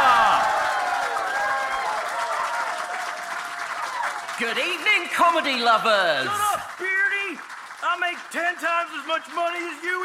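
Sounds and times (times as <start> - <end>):
audience whooping and cheering: 0.0 - 7.4
audience clapping: 0.0 - 10.0
speech: 4.4 - 6.6, 8.0 - 10.0.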